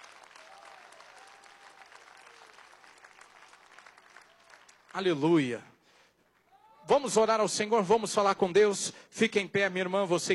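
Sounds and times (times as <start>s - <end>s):
audience applauding: 0.0s - 5.1s
speech: 5.0s - 5.7s, 6.9s - 10.3s.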